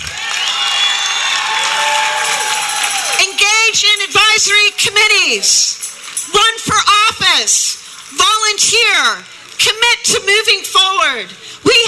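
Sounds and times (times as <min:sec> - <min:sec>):
crowd cheering: 0:00.0 - 0:05.6
speech: 0:03.7 - 0:11.8.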